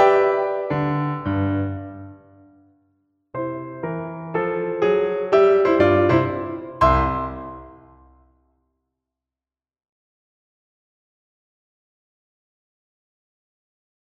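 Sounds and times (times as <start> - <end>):
musical accompaniment: 0.0 - 2.4, 3.4 - 8.2.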